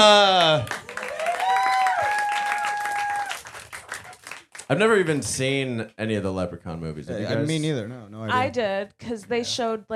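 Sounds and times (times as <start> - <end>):
audience applause: 0.0 - 5.2
speech: 4.7 - 9.9.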